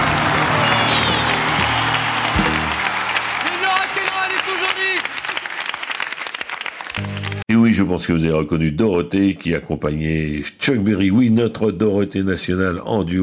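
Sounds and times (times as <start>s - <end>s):
crowd applause: 0.0s - 7.4s
speech: 7.8s - 13.2s.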